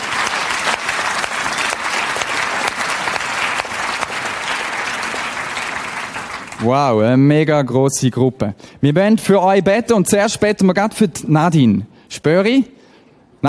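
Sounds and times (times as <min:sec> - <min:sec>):
audience applause: 0:00.0 - 0:06.7
speech: 0:06.6 - 0:12.8.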